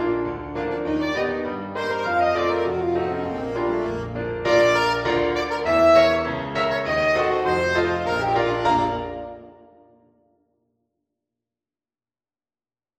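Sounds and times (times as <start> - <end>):
saxophone: 0.3 - 10.0.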